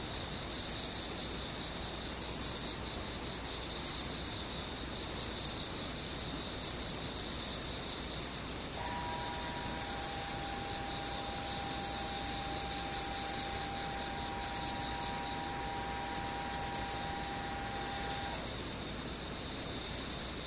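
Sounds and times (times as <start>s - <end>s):
insects chirping: 0.0s - 20.4s
steady high whine: 8.8s - 18.4s
sustained mid-pitched humming tone: 8.8s - 18.6s.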